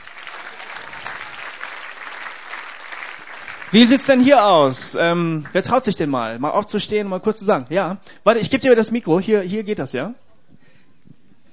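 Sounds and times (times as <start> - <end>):
audience applause: 0.0 - 5.6
speech: 3.7 - 10.2.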